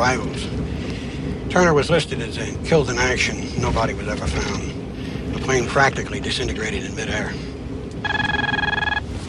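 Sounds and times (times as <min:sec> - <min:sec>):
speech: 0:00.0 - 0:00.6, 0:01.5 - 0:04.8, 0:05.4 - 0:08.2
telephone ringing in an electronic trill: 0:08.0 - 0:09.0.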